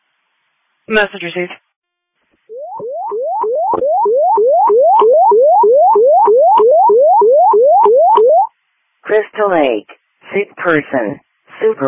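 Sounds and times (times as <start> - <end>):
speech: 0.9 - 1.6, 9.1 - 11.8
fire dispatch alert tone: 2.5 - 8.5.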